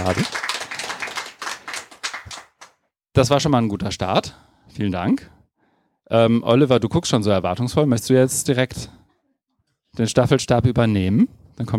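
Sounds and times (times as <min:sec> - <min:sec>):
speech: 0:00.0 - 0:00.4, 0:03.2 - 0:05.4, 0:06.1 - 0:09.0, 0:10.0 - 0:11.7
audience clapping: 0:00.0 - 0:02.9.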